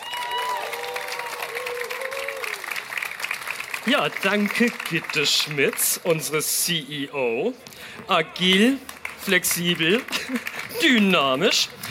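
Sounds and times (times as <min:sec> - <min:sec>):
applause: 0:00.0 - 0:06.0, 0:08.4 - 0:11.8
speech: 0:03.8 - 0:11.8.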